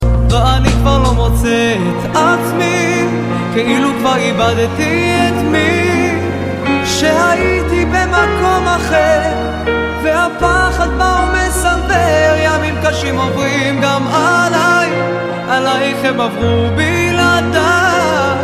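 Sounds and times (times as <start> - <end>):
Mizrahit music: 0.0 - 18.4.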